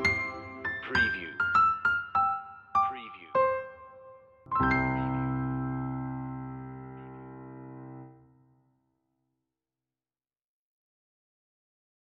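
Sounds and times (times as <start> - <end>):
piano: 0.0 - 8.8.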